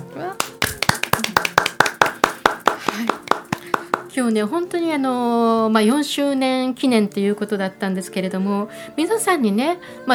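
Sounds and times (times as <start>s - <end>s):
hand clapping: 0.0s - 4.4s
speech: 4.2s - 10.1s.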